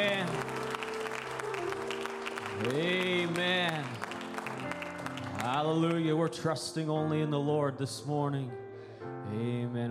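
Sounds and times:
church congregation clapping in praise during a morning worship service: 0.0 - 6.3
speech: 2.6 - 4.0, 5.7 - 8.6, 9.3 - 9.8.

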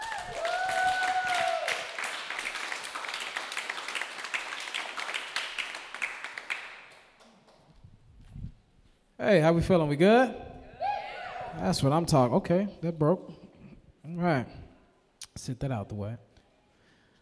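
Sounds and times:
audience applause: 0.0 - 7.6
speech: 9.2 - 10.4, 11.6 - 13.4, 14.1 - 14.6, 15.4 - 16.2.

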